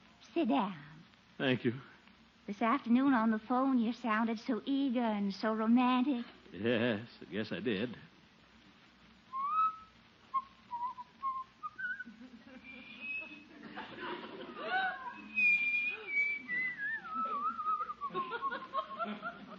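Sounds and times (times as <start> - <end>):
speech: 0.4 - 1.9, 2.5 - 8.1
man whistling a tune: 9.3 - 13.5, 15.1 - 18.7
soft breathy chuckling: 12.1 - 19.5.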